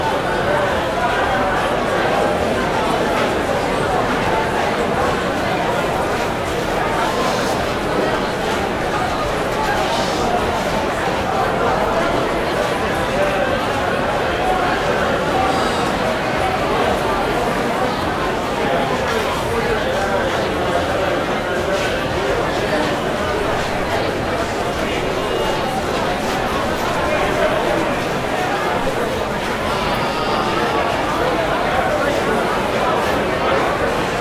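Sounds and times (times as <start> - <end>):
indoor crowd walla in an open corridor: 0.0 - 34.1.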